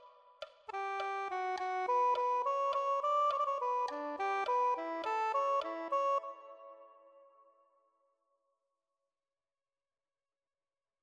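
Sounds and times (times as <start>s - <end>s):
soprano saxophone: 0.7s - 7.1s.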